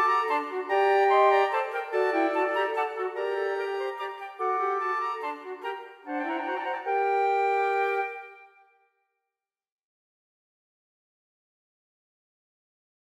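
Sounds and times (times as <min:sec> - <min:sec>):
four flutes playing a minuet: 0:00.0 - 0:08.8.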